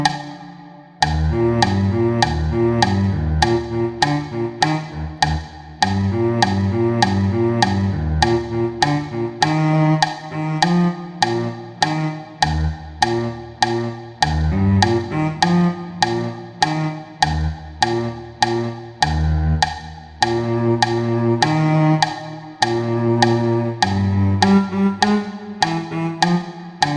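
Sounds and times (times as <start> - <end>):
first cello part of a duet: 0.0 - 19.6, 20.2 - 26.9.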